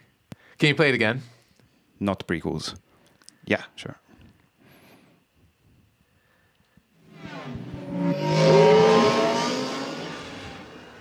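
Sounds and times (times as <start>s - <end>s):
speech: 0.6s - 1.4s, 2.0s - 2.8s, 3.4s - 4.0s
speeder bike sound effect from Return of the Jedi: 7.0s - 10.9s.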